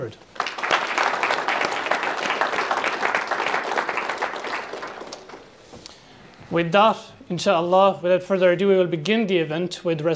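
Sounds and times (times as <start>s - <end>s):
speech: 0.0s - 0.4s, 6.5s - 10.1s
round of applause: 0.1s - 5.6s.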